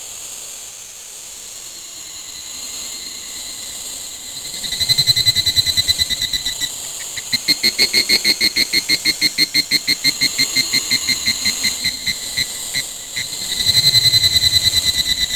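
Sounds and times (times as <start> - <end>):
cricket ambience: 4.1 - 15.3.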